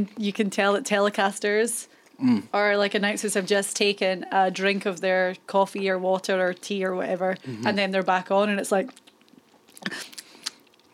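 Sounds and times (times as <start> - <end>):
speech: 0.0 - 9.0
person chewing noisily into the microphone: 8.8 - 10.9
lip smacks: 8.9 - 10.9.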